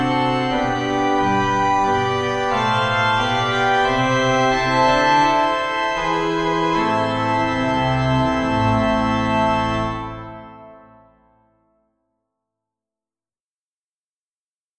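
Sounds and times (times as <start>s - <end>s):
organ miniature piece: 0.0s - 11.5s.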